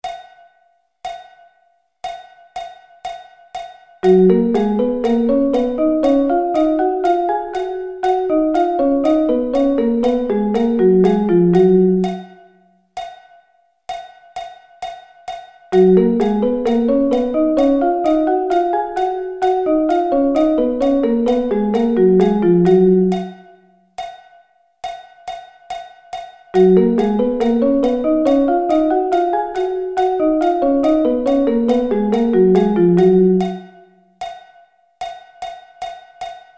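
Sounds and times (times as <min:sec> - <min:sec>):
musical thirds in G: 0:04.0 - 0:12.4, 0:15.8 - 0:23.4, 0:26.6 - 0:33.8.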